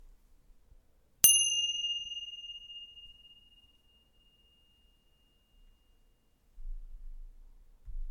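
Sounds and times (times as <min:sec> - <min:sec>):
chimes: 0:01.2 - 0:06.3.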